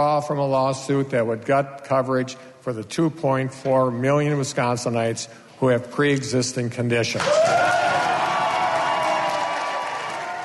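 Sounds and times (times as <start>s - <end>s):
speech: 0.0s - 8.0s
crowd applause during political speech: 7.2s - 10.4s.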